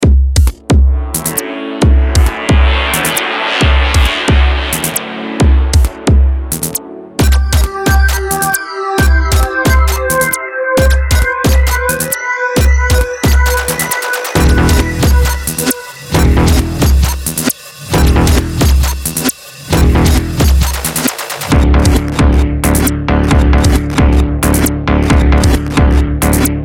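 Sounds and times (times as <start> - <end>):
electronica music: 0.0 - 26.6.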